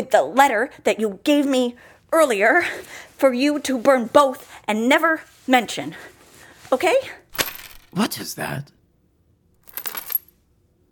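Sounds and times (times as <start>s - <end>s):
speech: 0.0s - 6.1s, 6.7s - 7.2s, 7.9s - 8.8s
necklace dropping with a metallic jingle and rattle: 7.3s - 8.0s, 9.6s - 10.4s.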